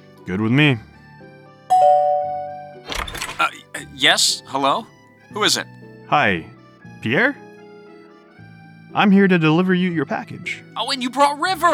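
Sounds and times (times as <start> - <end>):
speech: 0.2 - 0.9, 3.4 - 7.4, 8.9 - 11.7
video game doorbell two-tone chime: 1.7 - 2.9.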